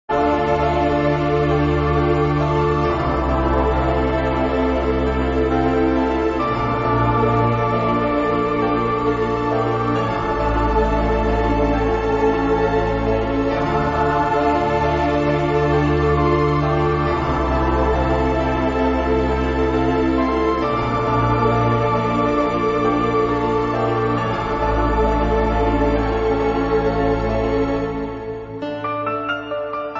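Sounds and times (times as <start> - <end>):
symphonic piano remix: 0.0 - 29.9.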